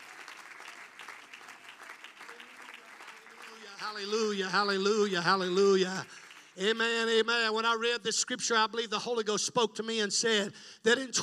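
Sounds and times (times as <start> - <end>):
audience clapping hands: 0.0 - 7.6
speech: 3.8 - 11.2.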